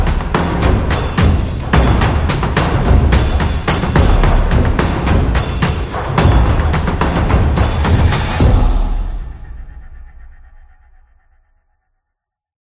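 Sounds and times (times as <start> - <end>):
Japanese taiko drums: 0.0 - 9.6.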